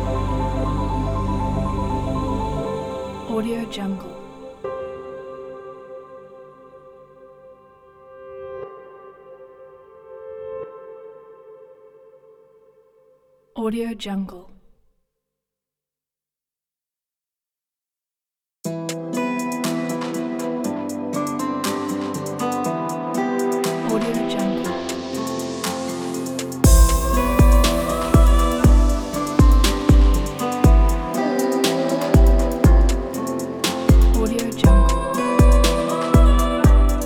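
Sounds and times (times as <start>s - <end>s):
ambient music: 0.0s - 7.1s, 18.8s - 37.0s.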